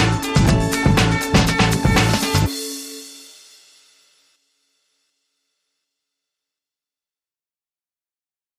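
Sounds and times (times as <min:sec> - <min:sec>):
music mix without vocal shouts or scratching: 0:00.0 - 0:04.4.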